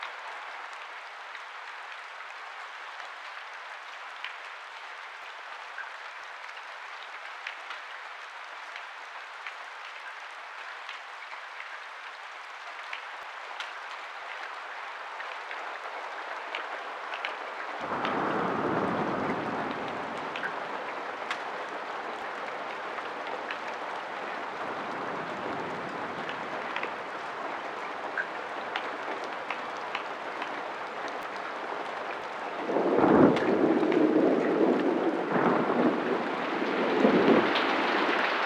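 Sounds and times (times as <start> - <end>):
rain: 0.0 - 38.4.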